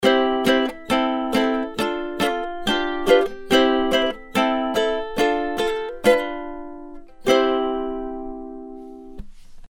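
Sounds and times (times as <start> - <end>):
ukulele: 0.0 - 9.6.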